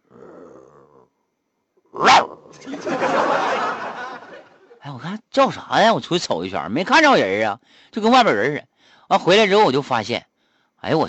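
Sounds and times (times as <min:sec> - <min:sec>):
rough sustained growling: 0:00.0 - 0:01.1
dog barking: 0:02.0 - 0:02.4
speech: 0:02.0 - 0:03.2, 0:04.9 - 0:11.0
laughter: 0:02.6 - 0:04.8.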